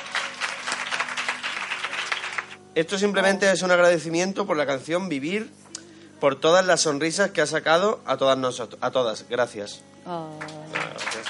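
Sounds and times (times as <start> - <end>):
audience applause: 0.0 - 2.6, 10.4 - 11.2
speech: 2.8 - 5.6, 6.2 - 10.8.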